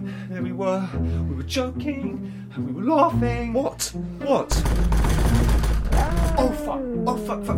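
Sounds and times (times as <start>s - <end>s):
speech: 0.3s - 7.5s
banging on a door: 4.5s - 6.7s.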